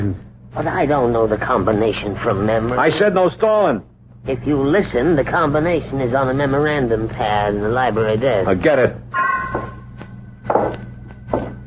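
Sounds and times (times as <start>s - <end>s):
speech: 0.0s - 9.2s
steady low hum: 0.0s - 11.6s
footsteps tapping across a hard floor: 9.3s - 11.6s.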